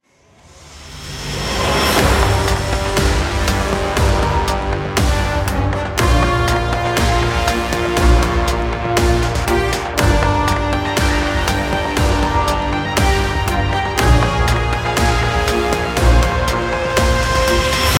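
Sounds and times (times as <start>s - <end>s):
battle intro music: 0.6s - 17.9s.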